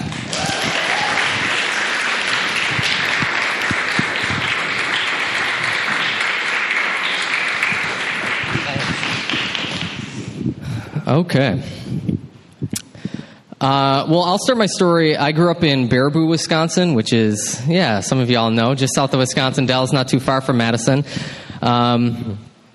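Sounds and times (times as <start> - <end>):
audience applause: 0.0 - 10.2
speech: 11.1 - 11.9, 13.6 - 22.5.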